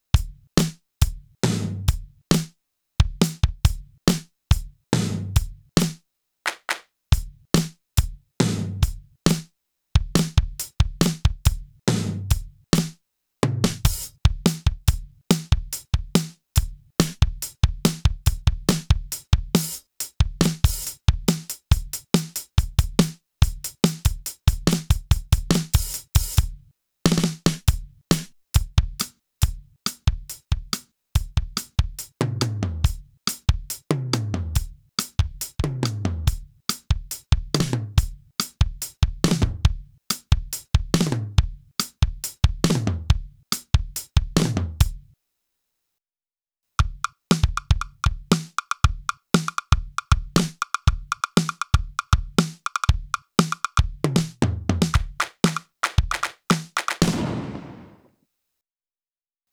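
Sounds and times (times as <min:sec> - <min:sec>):
clean dry drum kit: 0:00.2 - 0:45.0, 0:46.8 - 0:58.1.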